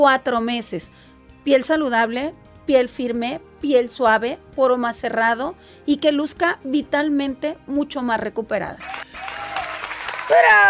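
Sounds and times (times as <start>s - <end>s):
speech: 0.0s - 9.2s, 10.3s - 10.6s
audience applause for the dermatologist: 8.8s - 10.6s.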